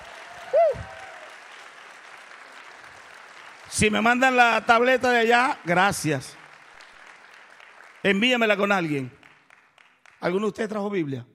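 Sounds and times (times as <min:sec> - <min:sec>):
audience applauding loudly: 0:00.0 - 0:10.6
speech: 0:03.7 - 0:06.4, 0:08.0 - 0:09.2, 0:10.2 - 0:11.3.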